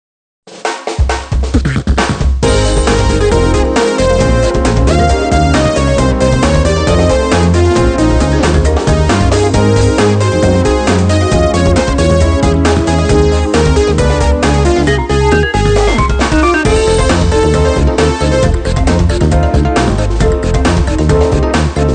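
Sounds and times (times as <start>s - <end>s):
music: 0.5s - 21.9s.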